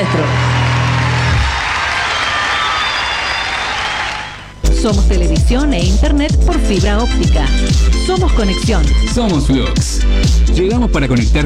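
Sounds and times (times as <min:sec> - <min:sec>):
speech: 0:00.0 - 0:00.4, 0:04.8 - 0:11.4
loud audience applause: 0:00.0 - 0:04.6.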